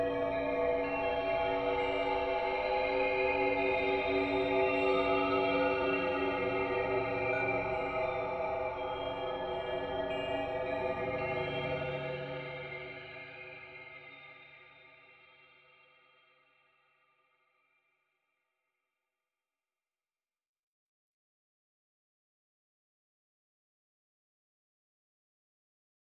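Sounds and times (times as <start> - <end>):
dreamy ambience: 0.0 - 16.1.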